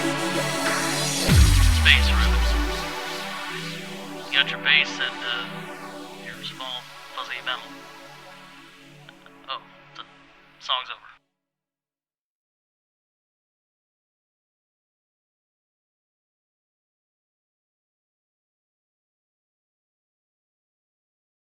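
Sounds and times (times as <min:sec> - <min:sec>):
techno music: 0:00.0 - 0:10.3.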